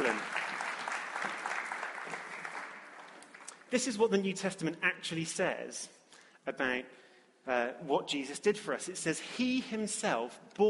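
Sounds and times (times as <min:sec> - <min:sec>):
audience applause: 0:00.0 - 0:03.6
speech: 0:03.7 - 0:10.6.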